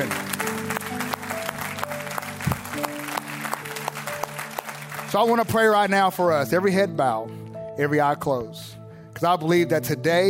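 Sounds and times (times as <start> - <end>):
audience clapping: 0.0 - 6.2
speech: 5.1 - 10.2.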